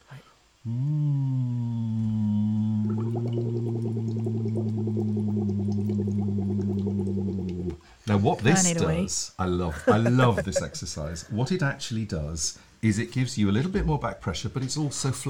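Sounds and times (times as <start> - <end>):
hummed tone blown through a straw: 0.6 - 7.9
speech: 0.7 - 1.2, 8.1 - 15.2
bubbles blown through a straw in water: 2.0 - 7.8
laughter: 9.7 - 11.2.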